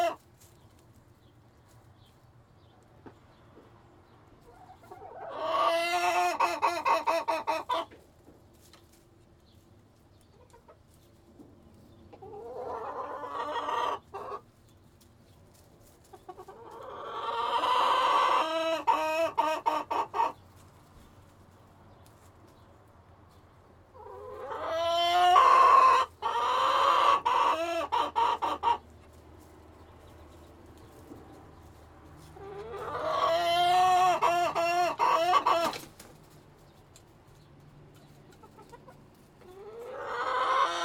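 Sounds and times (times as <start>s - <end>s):
chicken squawking: 0.0s - 0.2s, 4.5s - 7.9s, 12.1s - 14.4s, 16.3s - 20.4s, 24.0s - 28.9s, 32.4s - 36.0s, 39.5s - 40.8s.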